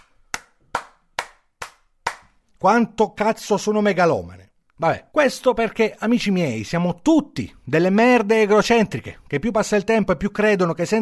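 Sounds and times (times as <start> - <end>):
slow hand claps: 0.0 - 2.4
speech: 2.6 - 11.0.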